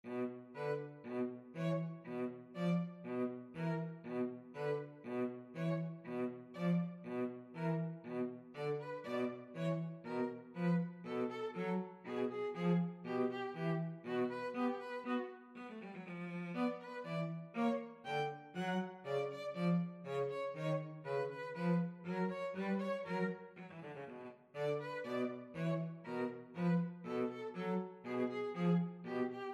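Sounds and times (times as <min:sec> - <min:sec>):
violin and cello duet: 0:00.0 - 0:29.5.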